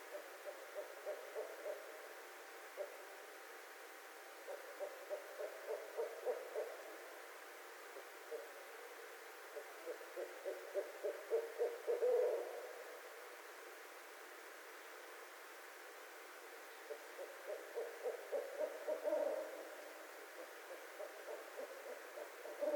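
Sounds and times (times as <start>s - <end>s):
barred owl excited hoots, cackles and wailing notes: 0.0s - 2.1s, 2.7s - 3.1s, 4.4s - 7.2s, 7.8s - 13.8s, 16.5s - 22.7s.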